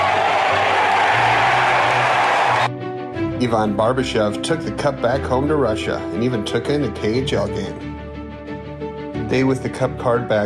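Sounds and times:
crowd cheering wildly: 0:00.0 - 0:02.7
speech: 0:03.4 - 0:07.9, 0:09.3 - 0:10.4.

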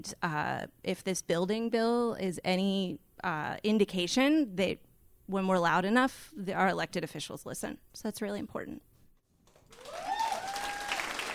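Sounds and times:
speech: 0:00.0 - 0:08.8
audience applause: 0:09.6 - 0:11.3.

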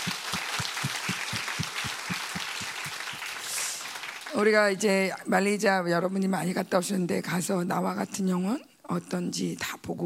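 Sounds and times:
audience applause: 0:00.0 - 0:04.5
speech: 0:04.4 - 0:10.0.

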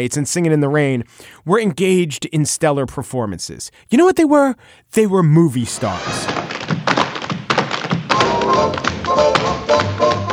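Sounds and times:
speech: 0:00.0 - 0:06.6
tap dancing on a hard floor: 0:06.0 - 0:10.3.

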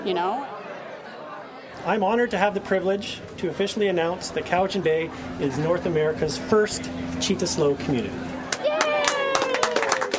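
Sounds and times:
speech: 0:00.0 - 0:00.6, 0:01.8 - 0:08.4
crowd clapping: 0:08.4 - 0:10.1
voices cheering and whooping: 0:08.4 - 0:10.1.

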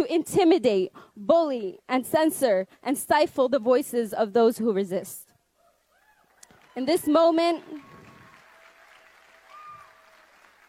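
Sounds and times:
speech: 0:00.0 - 0:05.2, 0:06.8 - 0:07.9
audience applause: 0:06.3 - 0:10.6.

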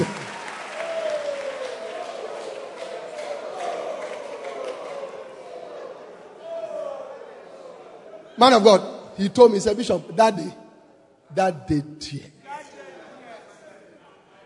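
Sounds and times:
church congregation clapping hands: 0:00.0 - 0:05.7
person talking loudly: 0:08.4 - 0:10.6, 0:11.3 - 0:12.3
speech: 0:08.4 - 0:10.6, 0:11.3 - 0:12.4.

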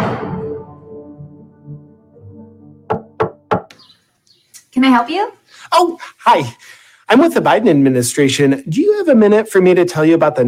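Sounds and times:
knocking on a door: 0:02.9 - 0:03.7
speech: 0:04.8 - 0:10.4.

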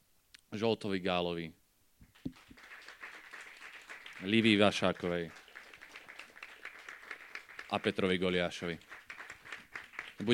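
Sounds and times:
speech: 0:00.5 - 0:01.6, 0:04.2 - 0:05.4, 0:07.7 - 0:08.9
audience applause: 0:02.2 - 0:10.3.

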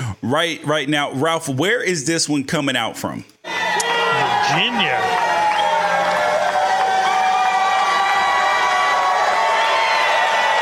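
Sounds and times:
speech: 0:00.2 - 0:03.9, 0:04.5 - 0:05.4
crowd cheering: 0:03.5 - 0:10.5.

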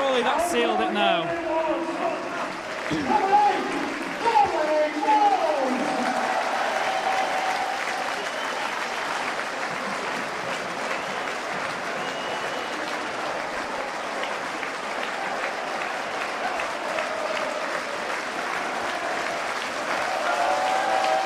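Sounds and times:
stadium crowd cheering after a goal: 0:00.0 - 0:21.2
speech: 0:00.2 - 0:01.9, 0:02.9 - 0:03.4
shrill whistles: 0:12.0 - 0:12.8.

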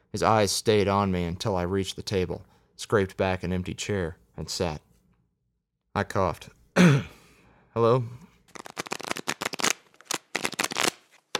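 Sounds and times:
speech: 0:00.1 - 0:04.9, 0:06.0 - 0:07.1, 0:07.8 - 0:08.7
playing cards being shuffled and dealt: 0:08.5 - 0:11.3.

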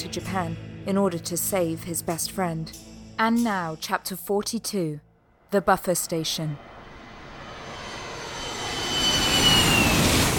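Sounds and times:
speech: 0:00.0 - 0:06.7
jet aircraft engine roar at New York's JFK Airport, Terminal 7: 0:06.6 - 0:10.3
thin high whine: 0:06.6 - 0:10.3.

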